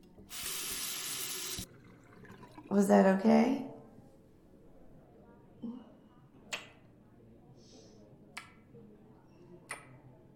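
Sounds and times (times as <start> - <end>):
water from a tap washing down a sink drain: 0.3 - 2.8
speech: 2.7 - 3.7.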